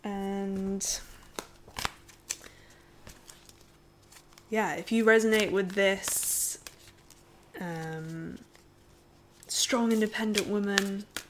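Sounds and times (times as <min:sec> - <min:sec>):
tarot cards shuffled and drawn: 0:00.2 - 0:11.2
speech: 0:00.8 - 0:01.1, 0:04.5 - 0:06.2, 0:09.7 - 0:11.1.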